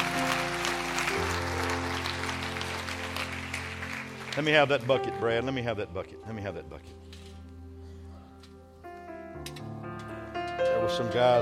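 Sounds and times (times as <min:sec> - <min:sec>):
audience clapping: 0:00.0 - 0:05.2
speech: 0:04.4 - 0:07.1, 0:10.9 - 0:11.3.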